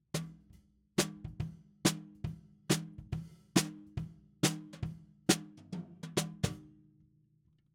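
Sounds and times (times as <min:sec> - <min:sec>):
snare drum: 0:01.0 - 0:06.6.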